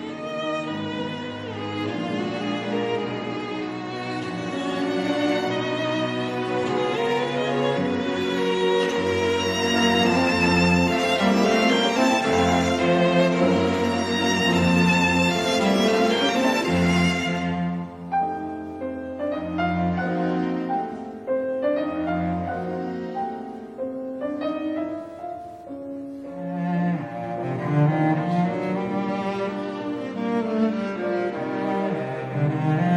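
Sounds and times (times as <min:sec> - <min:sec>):
piano quintet playing: 0:00.0 - 0:32.9.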